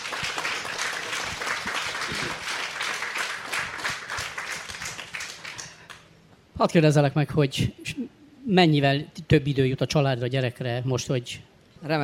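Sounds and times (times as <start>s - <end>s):
audience applause: 0.0s - 6.0s
speech: 6.6s - 7.8s, 8.5s - 12.0s.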